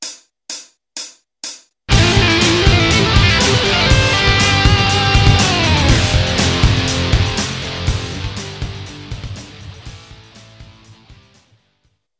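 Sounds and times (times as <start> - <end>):
guitar tapping: 1.9 - 9.6.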